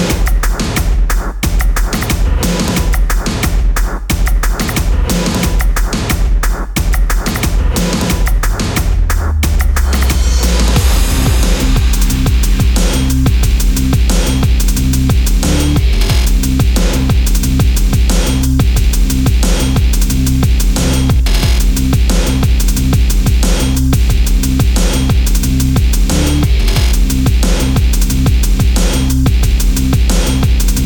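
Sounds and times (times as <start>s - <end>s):
hip hop music: 0.2s - 30.8s.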